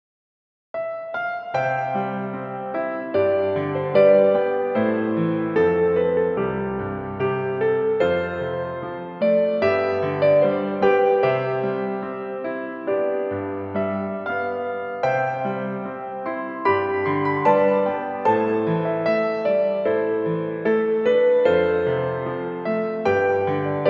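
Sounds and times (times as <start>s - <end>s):
piano music: 0.8s - 23.8s.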